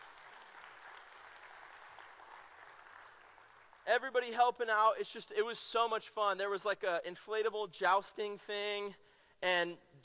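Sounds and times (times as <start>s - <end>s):
crowd applauding: 0.0s - 3.9s
speech: 3.9s - 10.0s.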